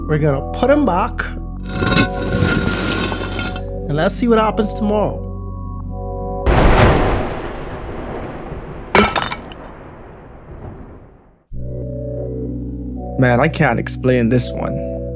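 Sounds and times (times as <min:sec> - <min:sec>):
speech: 0:00.1 - 0:02.6, 0:03.9 - 0:05.2, 0:13.2 - 0:14.8
statue of the god Dagon shattering into pieces: 0:01.6 - 0:03.6, 0:06.5 - 0:11.4
debris from the statue of Dagon rattling: 0:01.6 - 0:03.7, 0:06.5 - 0:11.4.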